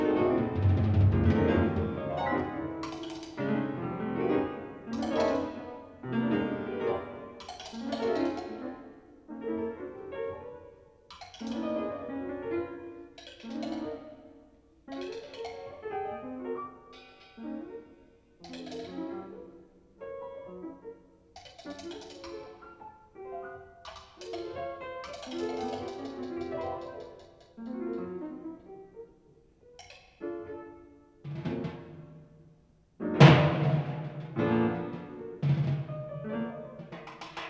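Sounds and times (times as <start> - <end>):
percussion in a duet with piano: 0.0 - 8.9, 11.1 - 16.2, 18.4 - 19.5, 21.4 - 22.9, 23.8 - 28.3, 31.2 - 37.4
piano in a duet with percussion: 0.0 - 37.4.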